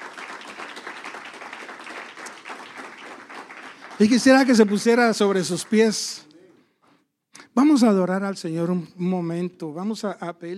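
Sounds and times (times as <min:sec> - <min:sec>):
audience applause: 0:00.0 - 0:06.2
speech: 0:04.0 - 0:06.3, 0:07.8 - 0:10.5.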